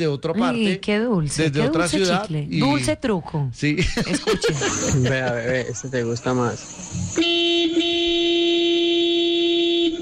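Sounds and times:
speech: 0:00.0 - 0:07.4
laughter: 0:03.8 - 0:06.1
loud long vehicle horn honk: 0:07.1 - 0:10.0.

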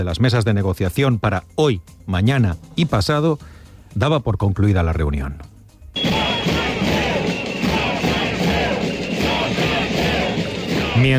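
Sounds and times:
speech: 0:00.0 - 0:06.1
large protest crowd chanting a slogan in unison: 0:06.0 - 0:11.1.

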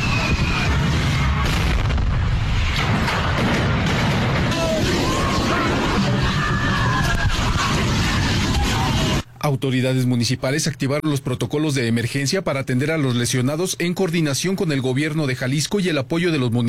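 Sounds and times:
fireworks: 0:00.0 - 0:09.2
gas tank explosions from street stalls amid fireworks: 0:00.0 - 0:09.2
speech: 0:09.5 - 0:16.6.

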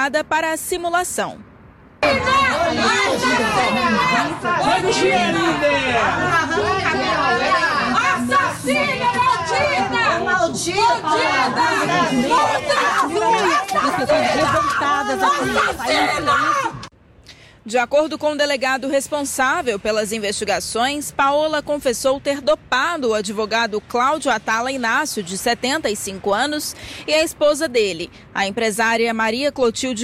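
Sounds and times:
speech: 0:00.0 - 0:16.7, 0:17.6 - 0:30.0
angry neighbours shouting in a crowd: 0:02.0 - 0:16.9.

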